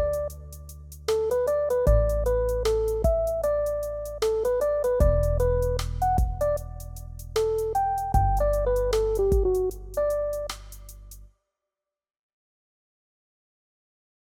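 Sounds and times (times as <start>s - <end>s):
drums: 0.0s - 11.2s
bass: 0.0s - 11.3s.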